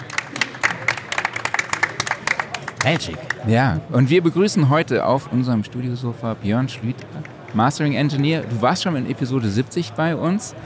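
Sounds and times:
live audience applause: 0:00.0 - 0:03.5
speech: 0:02.8 - 0:10.6.

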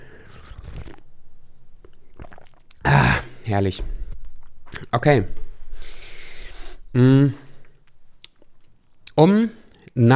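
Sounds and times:
coffee being sipped with slurping and swallowing: 0:00.0 - 0:01.1, 0:01.8 - 0:02.8
speech: 0:03.5 - 0:04.0, 0:04.9 - 0:05.4, 0:06.9 - 0:07.4, 0:09.2 - 0:10.1.

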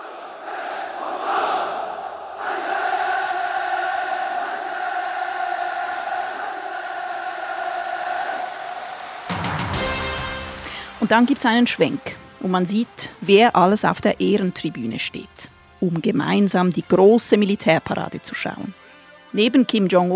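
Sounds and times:
large crowd cheering at military parade: 0:00.0 - 0:10.6
speech: 0:11.0 - 0:20.1.

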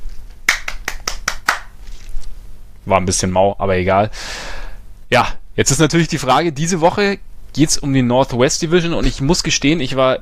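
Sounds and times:
hand claps: 0:00.4 - 0:01.7
speech: 0:02.8 - 0:10.2.

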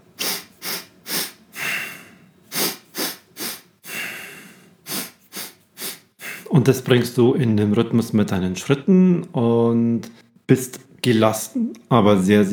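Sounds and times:
breathing with three inhales and one exhale: 0:00.2 - 0:06.5
speech: 0:06.5 - 0:12.5.

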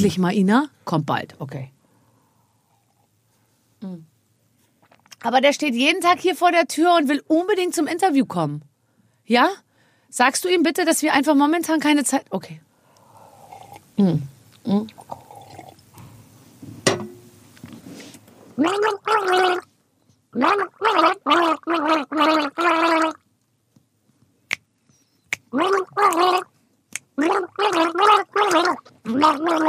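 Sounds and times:
speech: 0:00.0 - 0:01.8, 0:03.8 - 0:04.1, 0:05.2 - 0:08.7, 0:09.3 - 0:12.6, 0:14.0 - 0:15.2, 0:18.6 - 0:19.7, 0:20.4 - 0:23.2, 0:25.5 - 0:26.5, 0:27.2 - 0:29.6
person gargling a song tune: 0:13.7 - 0:15.7, 0:18.6 - 0:19.6, 0:20.4 - 0:23.2, 0:25.5 - 0:26.5, 0:27.2 - 0:29.6.

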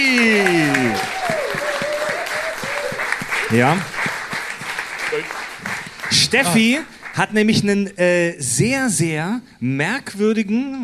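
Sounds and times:
audience applause: 0:00.0 - 0:07.4
speech: 0:03.5 - 0:04.0, 0:06.3 - 0:10.8.

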